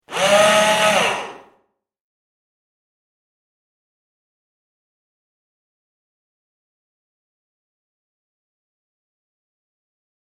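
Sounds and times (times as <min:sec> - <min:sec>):
electric screwdriver: 0:00.1 - 0:01.5.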